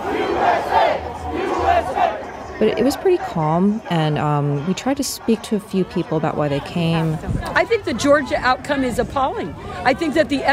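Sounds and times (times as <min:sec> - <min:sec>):
crowd chanting slogans: 0:00.0 - 0:07.6
speech: 0:02.6 - 0:10.5.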